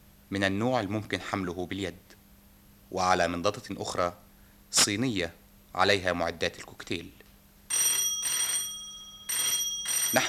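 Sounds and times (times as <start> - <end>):
speech: 0.3 - 2.2, 2.9 - 7.8
old-fashioned telephone bell ringing in a furnished room: 7.7 - 10.2.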